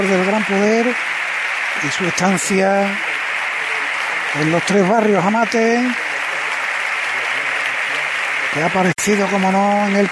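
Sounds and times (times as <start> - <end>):
speech: 0.0 - 1.1, 1.8 - 3.1, 4.4 - 6.0, 8.5 - 10.1
audience ovation applause: 0.0 - 10.1.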